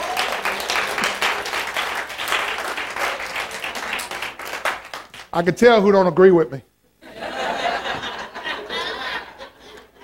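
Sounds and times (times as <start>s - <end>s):
audience clapping: 0.0s - 5.6s
speech: 5.3s - 6.7s
laughter: 7.0s - 10.0s.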